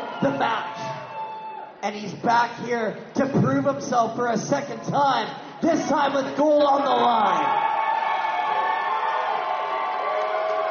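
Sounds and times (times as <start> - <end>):
local crowd cheering: 0.0 - 1.8, 6.7 - 10.6
speech: 0.2 - 0.9, 1.8 - 7.6.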